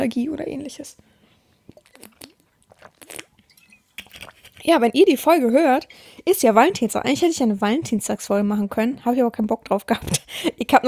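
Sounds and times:
speech: 0.0 - 1.2, 4.7 - 10.8
person sipping and swallowing water: 1.5 - 4.8.

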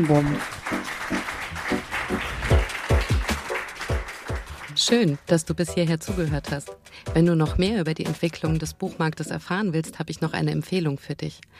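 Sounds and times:
speech: 0.0 - 1.2, 4.8 - 11.5
audience applauding: 0.0 - 5.3.

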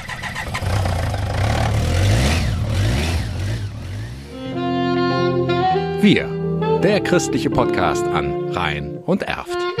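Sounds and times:
BMW motorcycle sidecar engine starting and revving: 0.0 - 5.3
speech: 6.0 - 9.7.

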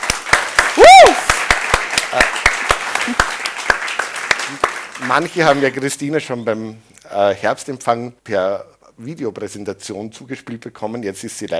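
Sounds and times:
audience applause: 0.0 - 5.6
speech: 5.1 - 11.5.

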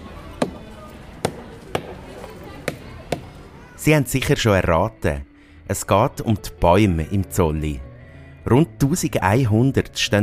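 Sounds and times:
low steady noise: 0.0 - 10.2
rubber mallet striking a tree trunk: 0.4 - 0.6, 1.2 - 2.0, 2.6 - 3.4
speech: 3.8 - 10.2.

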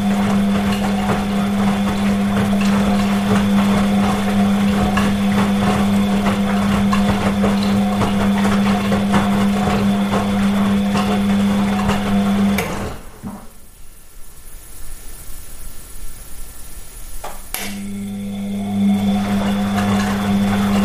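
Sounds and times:
washing machine running: 0.0 - 20.8.

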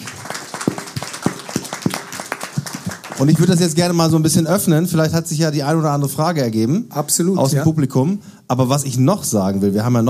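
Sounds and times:
sparse hand claps from a small audience applauding a panel: 0.0 - 3.6
speech: 3.2 - 10.0.

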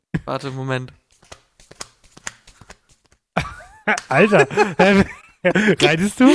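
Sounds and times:
chest-clapping imitation of horse hooves: 0.2 - 3.2, 3.8 - 4.3
speech: 0.3 - 1.0, 3.9 - 6.3
laughter: 3.4 - 6.3.

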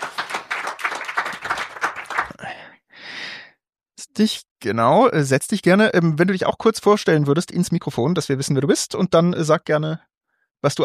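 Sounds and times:
audience applause: 0.0 - 2.4
speech: 4.2 - 10.8.

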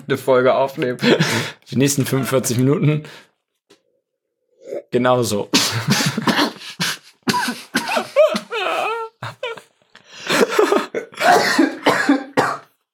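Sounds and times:
speech: 0.1 - 3.3, 4.9 - 6.4
person coughing after choking on beer: 5.6 - 9.6, 10.3 - 12.8.

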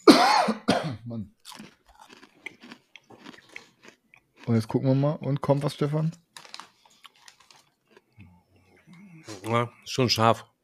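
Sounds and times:
crunching while eating spicy mango: 1.4 - 4.8, 6.3 - 9.6
speech: 4.5 - 6.2, 9.5 - 10.5.

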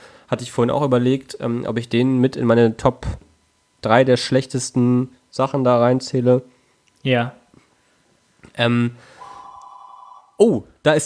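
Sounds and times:
speech: 0.3 - 7.4, 8.5 - 9.1, 10.4 - 11.0
buzzy burst: 9.1 - 10.4
telephone ringing: 9.2 - 10.4.

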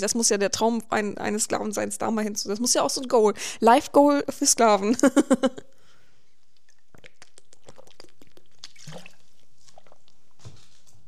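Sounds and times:
speech: 0.0 - 5.7
person sipping a drink: 6.2 - 10.3
soft wet mouth clicks and swallowing: 6.4 - 10.2.

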